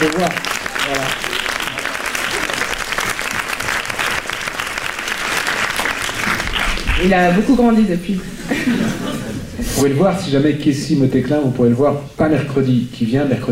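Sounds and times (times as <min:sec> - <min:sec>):
audience applause: 0:00.0 - 0:07.3
speech: 0:07.0 - 0:13.5
laughter: 0:08.2 - 0:10.0.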